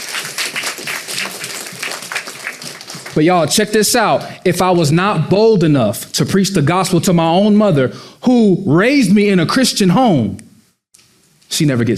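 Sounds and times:
audience clapping: 0:00.0 - 0:03.8
speech: 0:03.2 - 0:10.5, 0:11.5 - 0:11.9.

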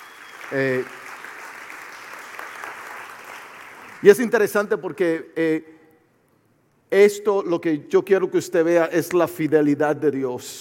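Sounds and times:
audience applause: 0:00.0 - 0:04.1
speech: 0:00.5 - 0:01.0, 0:04.0 - 0:05.8, 0:06.9 - 0:10.5.

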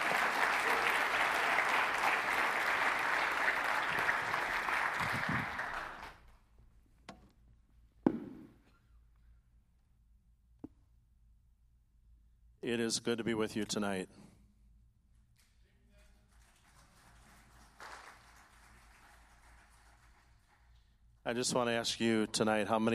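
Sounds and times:
audience clapping: 0:00.0 - 0:06.4, 0:16.0 - 0:20.9
speech: 0:12.7 - 0:14.3, 0:21.3 - 0:22.9.

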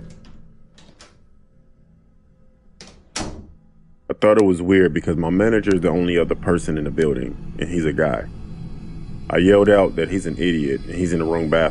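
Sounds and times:
bathroom door opening: 0:00.0 - 0:01.3, 0:02.8 - 0:03.6
speech: 0:04.1 - 0:08.4, 0:09.3 - 0:11.6.

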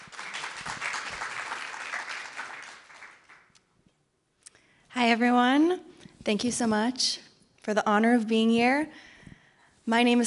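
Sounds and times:
audience clapping: 0:00.0 - 0:03.7
speech: 0:05.0 - 0:09.1, 0:09.9 - 0:10.2.

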